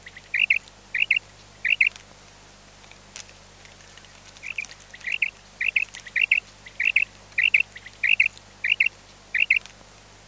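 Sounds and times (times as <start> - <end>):
common quail calling: 0.0 - 2.0, 4.0 - 9.7.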